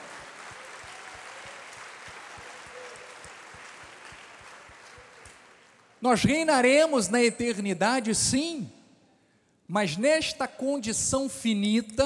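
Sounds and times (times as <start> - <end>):
audience applause: 0.0 - 6.0
speech: 6.0 - 8.8, 9.7 - 12.0.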